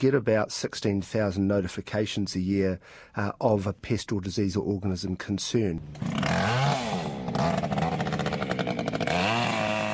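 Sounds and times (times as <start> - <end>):
speech: 0.0 - 6.8
chainsaw cutting out kiwifruit vines: 5.8 - 9.9.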